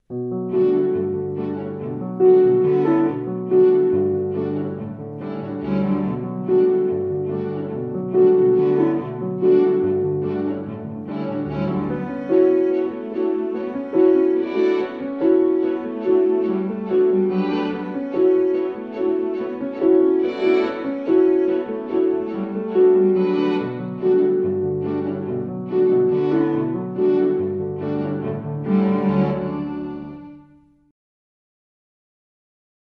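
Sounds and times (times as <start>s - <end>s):
strings: 0.1s - 30.8s.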